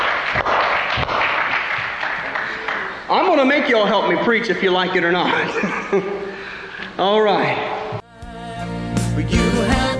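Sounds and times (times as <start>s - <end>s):
audience hand clapping: 0.0s - 3.3s
speech: 3.3s - 6.3s, 7.0s - 7.7s, 9.2s - 9.9s
laughter: 5.2s - 6.5s.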